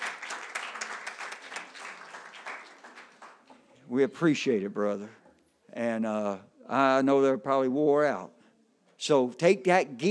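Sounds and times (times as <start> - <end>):
church audience applause: 0.0 - 3.6
speech: 3.9 - 5.2, 5.8 - 8.4, 9.0 - 10.0.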